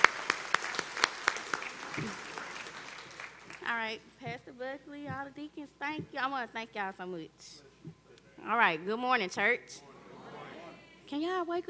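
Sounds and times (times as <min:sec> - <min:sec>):
audience applause: 0:00.0 - 0:03.6
speech: 0:03.9 - 0:09.9, 0:11.1 - 0:11.6.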